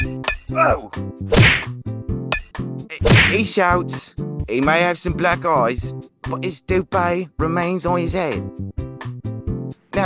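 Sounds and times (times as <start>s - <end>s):
speech: 0.6s - 1.8s, 3.3s - 8.8s
baseball bat hitting someone's face: 1.3s - 1.7s, 3.0s - 3.5s.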